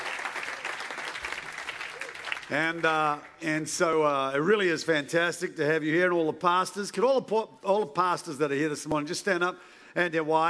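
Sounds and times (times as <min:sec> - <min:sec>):
crowd applause for the band at a morning church gathering: 0:00.0 - 0:03.5
speech: 0:02.5 - 0:10.4.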